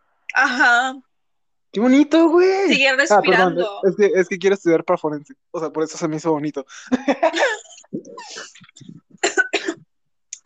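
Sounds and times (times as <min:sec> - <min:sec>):
speech: 0:00.4 - 0:01.1, 0:01.7 - 0:09.4
laughter: 0:06.8 - 0:08.2
person coughing after choking on air: 0:07.3 - 0:08.5, 0:09.2 - 0:09.9.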